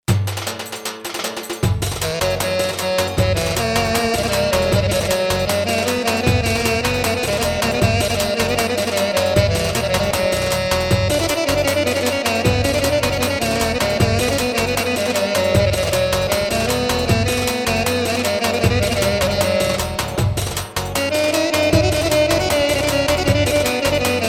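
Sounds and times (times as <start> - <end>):
ciftetelli dance rhythm: 0.1 - 24.2.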